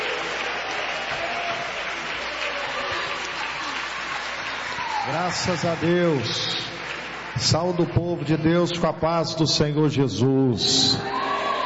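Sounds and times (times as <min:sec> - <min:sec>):
audience applauding: 0:00.0 - 0:08.7
speech: 0:05.1 - 0:06.7, 0:07.4 - 0:11.2.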